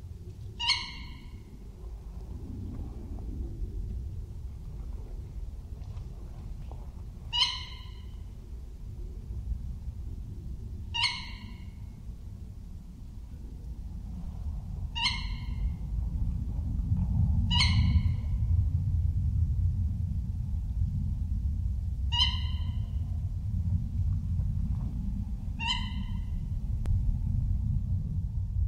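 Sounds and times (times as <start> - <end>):
constant low rumble: 0.0 - 28.6
tawny owl harsh calls: 0.6 - 1.5, 7.3 - 8.2, 10.9 - 11.8, 14.9 - 15.6, 17.5 - 18.3, 22.1 - 23.0, 25.6 - 26.4.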